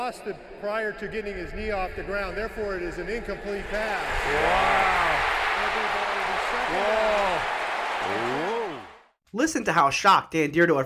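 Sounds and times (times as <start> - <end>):
speech: 0.0 - 6.0, 6.7 - 8.5, 9.3 - 10.8
stadium crowd reacting in shock: 3.3 - 9.1.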